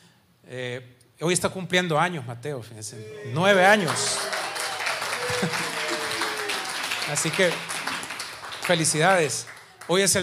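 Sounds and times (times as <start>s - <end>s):
speech: 0.5s - 4.4s, 7.1s - 7.7s, 8.7s - 10.2s
laughter: 3.0s - 6.8s
audience applause: 3.4s - 10.2s.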